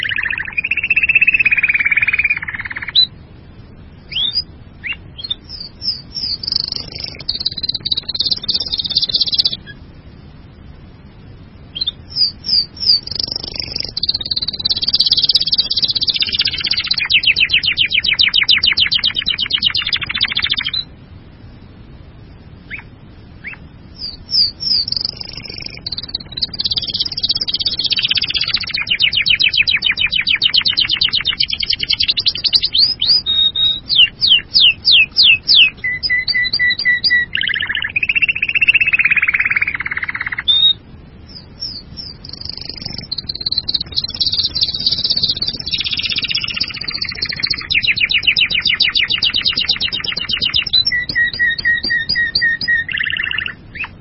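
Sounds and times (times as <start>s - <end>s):
bird chirping: 0.0s - 21.6s, 22.2s - 53.9s.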